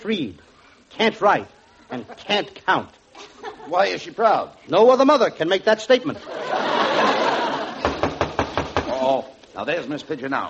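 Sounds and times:
speech: 0.0s - 6.7s, 9.6s - 10.4s
laughter: 3.1s - 4.1s, 6.0s - 8.2s
knocking on a door radio comedy sound effect: 7.8s - 9.0s.

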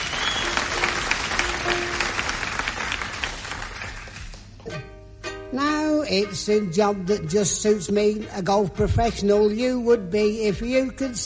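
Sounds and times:
crowd applause: 0.0s - 4.6s
speech: 5.6s - 11.2s.

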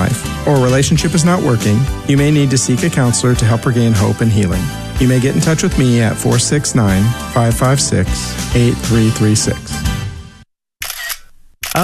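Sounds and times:
speech: 0.5s - 9.9s
phone camera shutter clicks taking a selfie: 10.8s - 11.8s.

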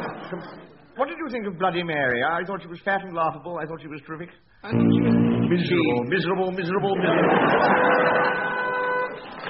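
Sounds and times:
laughter: 0.0s - 0.8s, 6.7s - 8.6s
speech: 0.3s - 8.6s
quiz show buzzer: 4.7s - 6.3s, 7.2s - 9.3s.

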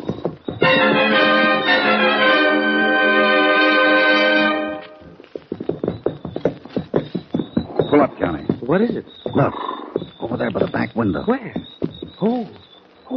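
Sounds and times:
horses ridden, hooves clip-clopping: 0.0s - 2.4s, 4.6s - 13.1s
sustained musical chord: 0.6s - 5.0s
speech: 8.7s - 9.8s, 10.4s - 12.4s.

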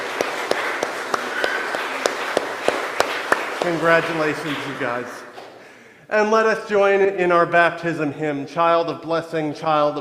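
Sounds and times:
audience applause: 0.0s - 5.3s
speech: 3.6s - 5.3s, 6.1s - 9.9s.

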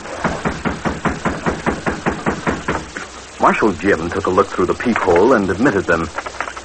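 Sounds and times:
knocking on a back door: 0.2s - 2.9s
speech: 3.4s - 6.5s.

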